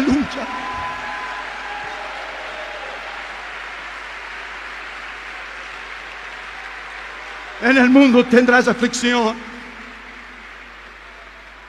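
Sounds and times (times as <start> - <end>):
audience applause: 0.0 - 11.6
speech: 7.6 - 9.5.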